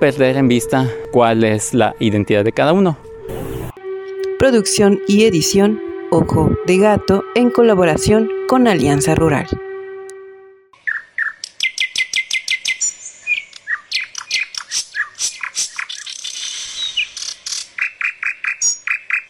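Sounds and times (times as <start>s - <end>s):
speech: 0.0s - 3.1s, 4.4s - 9.6s
mockingbird song: 10.8s - 19.2s.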